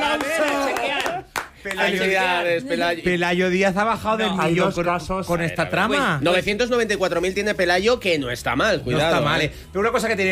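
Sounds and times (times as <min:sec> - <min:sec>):
hand clapping: 0:00.0 - 0:02.0
loud excited voices: 0:00.0 - 0:03.2
speech: 0:01.7 - 0:10.3.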